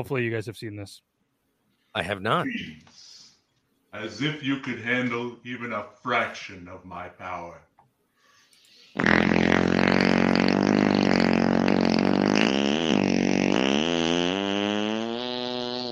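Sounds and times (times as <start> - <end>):
speech: 0.0 - 1.1, 2.0 - 3.1, 3.9 - 7.7
fake fart in video: 9.0 - 15.8.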